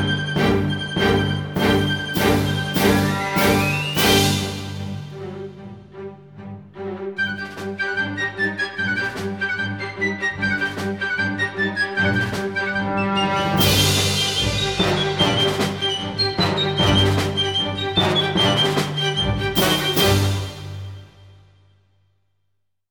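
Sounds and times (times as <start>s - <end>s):
piccolo: 0.0s - 5.0s, 7.2s - 21.6s.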